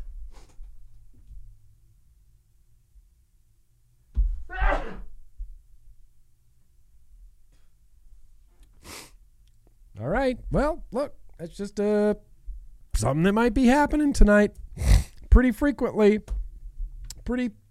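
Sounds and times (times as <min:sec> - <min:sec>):
person sneezing: 0:04.5 - 0:05.0
speech: 0:10.2 - 0:12.3, 0:13.0 - 0:16.3, 0:17.3 - 0:17.6.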